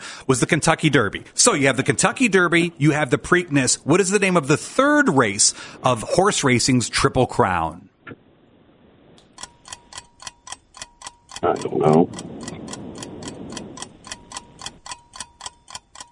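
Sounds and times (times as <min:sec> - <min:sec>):
speech: 0:00.2 - 0:08.2, 0:11.5 - 0:12.3
quiz timer ticking: 0:09.2 - 0:16.1.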